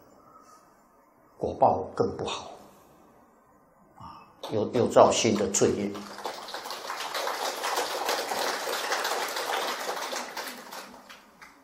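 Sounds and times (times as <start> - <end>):
speech: 1.4 - 2.5, 4.5 - 6.2
audience applause: 5.2 - 11.6.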